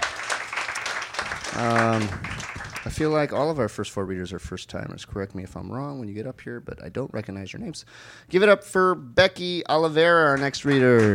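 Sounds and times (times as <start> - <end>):
audience applause: 0.0 - 3.2, 10.4 - 11.1
speech: 1.5 - 11.1.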